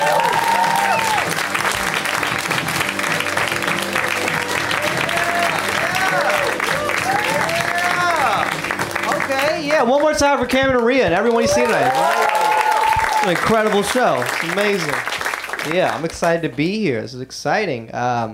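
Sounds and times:
comedy club audience cheering and shouting: 0:00.0 - 0:01.6, 0:03.9 - 0:08.7, 0:11.2 - 0:14.7
comedy club audience clapping for the final comic: 0:00.0 - 0:16.8
speech: 0:10.1 - 0:12.1, 0:13.2 - 0:18.3.

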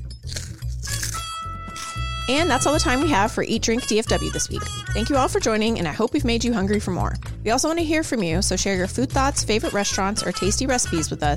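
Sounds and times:
crunching cheese puff snack being chewed: 0:00.2 - 0:02.0
speech: 0:02.3 - 0:11.3.

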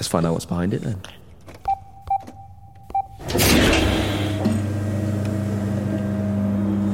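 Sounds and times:
speech: 0:00.0 - 0:01.2
short electronic beeps: 0:01.6 - 0:03.2
large metal door sliding open: 0:03.2 - 0:06.1.

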